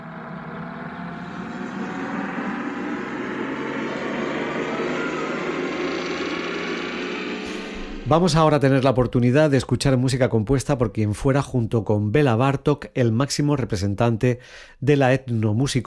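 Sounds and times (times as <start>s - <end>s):
time machine sound effect whirring drone: 0.0s - 9.0s
speech: 8.1s - 15.8s.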